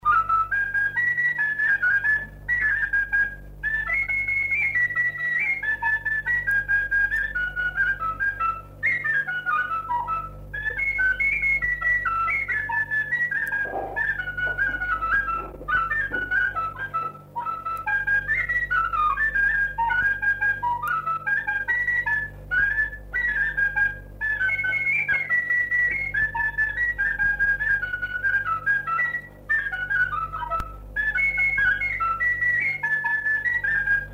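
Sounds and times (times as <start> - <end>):
folk tune on a shepherd's flute: 0.0 - 34.1.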